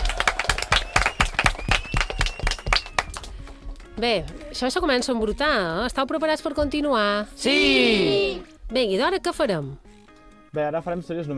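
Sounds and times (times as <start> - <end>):
audience applause: 0.0 - 3.4
speech: 4.0 - 9.8, 10.5 - 11.3.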